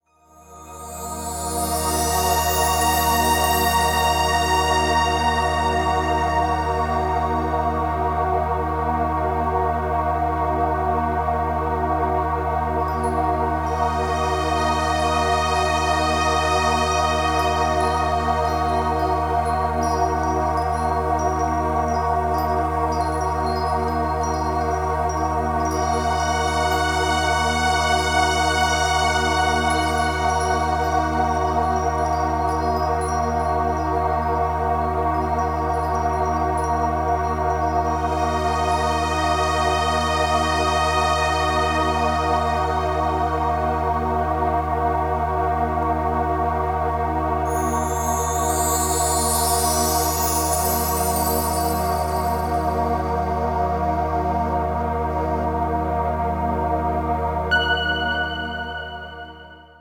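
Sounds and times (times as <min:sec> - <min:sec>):
music for Reiki and meditation: 0:00.1 - 0:59.7.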